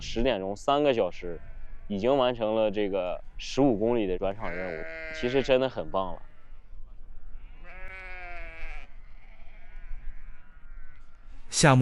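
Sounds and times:
speech: 0:00.0 - 0:06.3, 0:11.5 - 0:11.8
sheep bleating as a flock is penned at a summer pasture: 0:04.2 - 0:06.4, 0:07.4 - 0:11.4.

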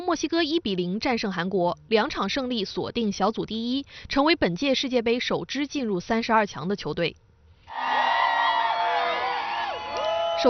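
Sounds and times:
speech: 0:00.1 - 0:08.0
football fans cheering outdoors in Mexico City watching a World Cup broadcast: 0:07.7 - 0:10.4.

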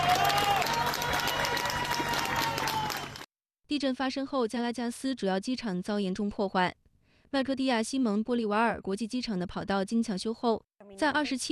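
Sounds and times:
rescuers and residents shouting excitedly: 0:00.0 - 0:03.1
rescuers and residents clapping outdoors: 0:00.0 - 0:03.3
speech: 0:03.8 - 0:11.5.

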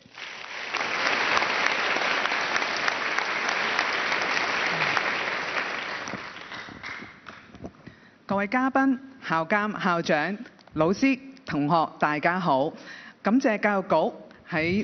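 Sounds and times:
warm audience applause: 0:00.0 - 0:07.5
speech: 0:08.3 - 0:14.8.

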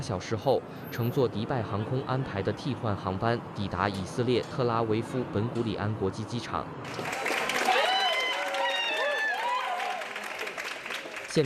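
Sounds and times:
speech: 0:00.0 - 0:07.3
passengers' families cheering at airport arrival: 0:06.9 - 0:11.4.

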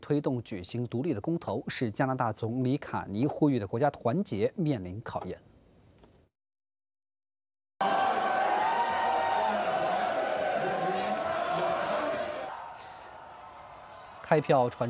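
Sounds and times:
speech: 0:00.1 - 0:05.5, 0:14.3 - 0:14.8
large crowd cheering and shouting at election party: 0:07.8 - 0:14.8.

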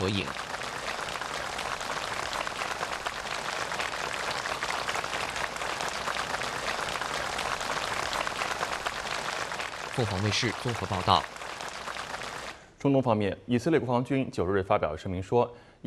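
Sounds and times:
speech: 0:00.0 - 0:00.5, 0:10.0 - 0:11.4, 0:12.8 - 0:15.8
warm applause: 0:00.0 - 0:12.8.

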